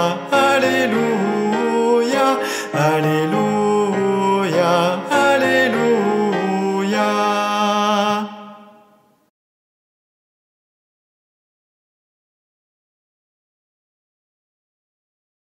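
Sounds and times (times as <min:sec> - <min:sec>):
soprano voices singing an alleluia: 0:00.0 - 0:08.8.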